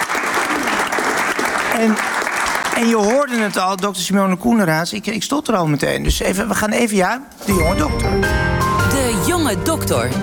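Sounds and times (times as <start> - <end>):
crowd applauding warmly: 0.0 - 3.9
speech: 1.8 - 2.1, 2.8 - 8.6, 9.2 - 10.2.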